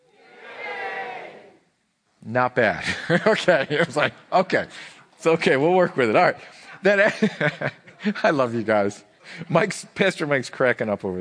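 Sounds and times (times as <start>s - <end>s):
crowd cheering: 0.0s - 1.6s
speech: 2.2s - 11.1s
laughter: 2.8s - 4.7s, 6.8s - 8.5s.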